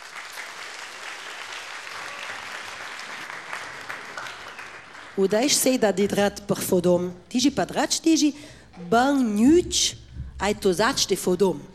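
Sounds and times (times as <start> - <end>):
large crowd applause: 0.0 - 5.3
speech: 5.2 - 11.7.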